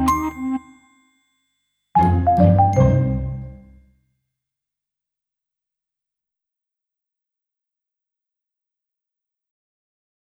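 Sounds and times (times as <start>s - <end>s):
musical accompaniment: 0.0s - 0.9s, 2.0s - 3.8s.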